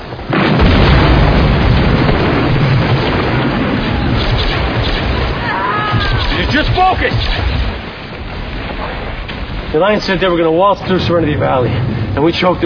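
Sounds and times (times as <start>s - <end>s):
booming battle explosions: 0.0s - 12.6s
bursts of battle gunfire: 0.4s - 8.7s
speech: 6.6s - 7.4s, 9.7s - 12.6s.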